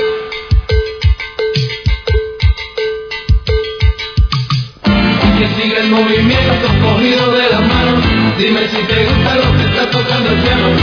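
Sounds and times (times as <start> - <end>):
busy percussion: 0.0 - 10.8
cowbell playing a salsa pattern: 0.0 - 10.8
speech: 8.4 - 10.7.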